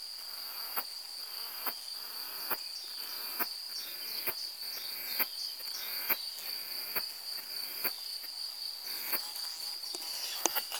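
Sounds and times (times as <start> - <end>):
cicada droning: 0.3 - 10.7
faint ticking clicks: 9.8 - 10.7.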